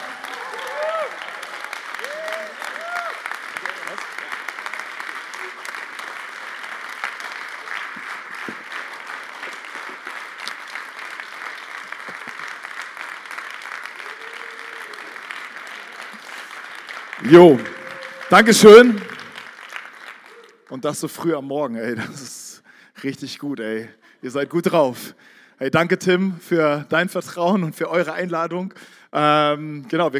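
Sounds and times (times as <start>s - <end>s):
audience applause: 0.0s - 20.8s
speech: 17.3s - 17.7s, 18.3s - 19.1s, 20.8s - 22.4s, 23.0s - 30.1s.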